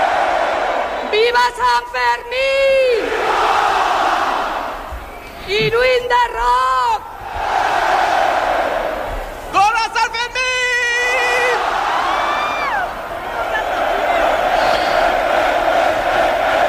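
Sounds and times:
festival crowd cheering in a town square: 0.0s - 1.3s, 2.9s - 5.0s, 7.2s - 9.5s, 10.6s - 16.6s
speech: 1.4s - 3.6s, 5.5s - 7.1s.

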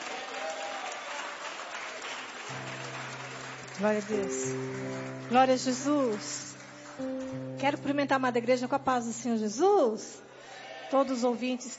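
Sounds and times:
audience applauding: 0.0s - 7.9s
speech: 3.8s - 10.3s, 10.9s - 11.7s.

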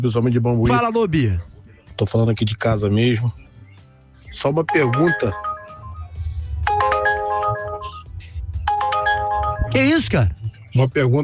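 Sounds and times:
speech: 0.0s - 3.4s, 4.3s - 5.4s, 9.7s - 11.2s
phone ringtone jingle: 4.6s - 10.0s.

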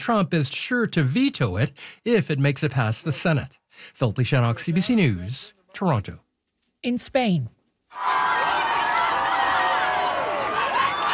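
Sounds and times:
speech: 0.0s - 6.2s, 6.8s - 8.3s
thousands of people in the streets of Madrid cheering to welcome Pope Leo: 7.9s - 11.1s.

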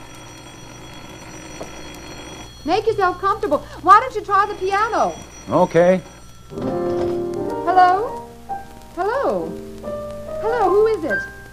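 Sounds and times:
telephone bell ringing in the next room: 0.0s - 8.1s
hiss: 0.0s - 11.5s
speech: 2.6s - 6.8s, 7.8s - 8.2s, 9.0s - 11.3s.

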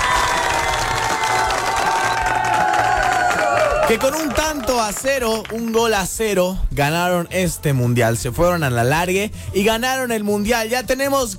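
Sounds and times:
applause and cheering: 0.0s - 6.4s
speech: 3.9s - 11.3s.

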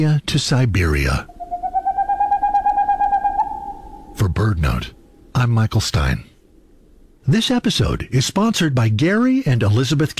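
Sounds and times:
speech: 0.0s - 1.4s, 4.2s - 6.3s, 7.2s - 10.1s
faint hiss: 0.0s - 10.1s
boreal owl singing rapid mellow hooting notes: 1.0s - 5.4s.

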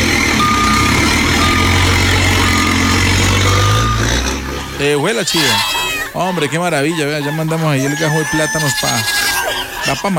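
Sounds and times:
loaded vehicle engine rumbling: 0.0s - 6.8s
short, high electronic beeps: 0.4s - 4.3s
speech: 4.8s - 9.2s, 9.8s - 10.1s.

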